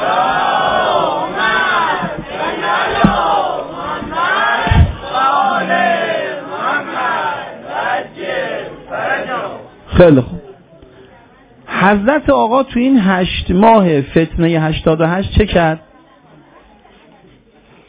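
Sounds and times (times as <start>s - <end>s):
crowd chanting salawat in unison for Imam Ali: 0.0s - 9.8s
low thumps: 1.8s - 5.2s
speech: 10.0s - 10.4s, 11.9s - 15.8s.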